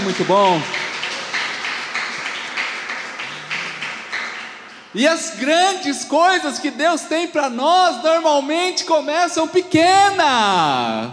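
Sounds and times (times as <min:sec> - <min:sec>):
audience applauding: 0:00.0 - 0:05.2
speech: 0:00.1 - 0:00.8, 0:05.0 - 0:11.1.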